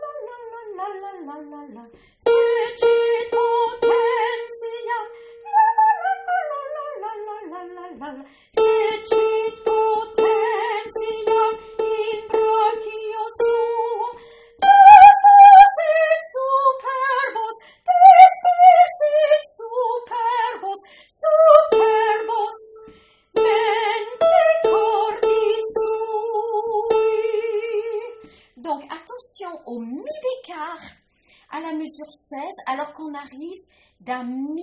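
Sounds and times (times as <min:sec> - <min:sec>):
tenor singing a canticle: 0:02.3 - 0:28.2.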